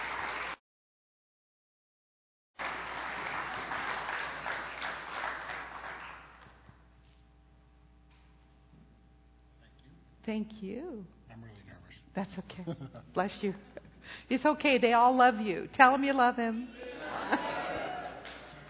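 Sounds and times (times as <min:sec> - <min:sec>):
audience applauding speaker's arrival: 0:00.0 - 0:00.6, 0:02.6 - 0:06.6, 0:17.0 - 0:18.6
faint quiet hum: 0:02.6 - 0:18.6
speech: 0:10.3 - 0:17.3
laughter: 0:12.5 - 0:14.0, 0:16.5 - 0:18.6.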